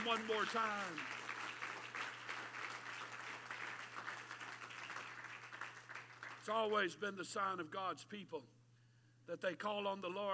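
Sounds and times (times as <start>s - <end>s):
speech: 0.0s - 1.2s, 6.4s - 8.6s, 9.3s - 10.3s
audience clapping hands: 0.0s - 6.7s.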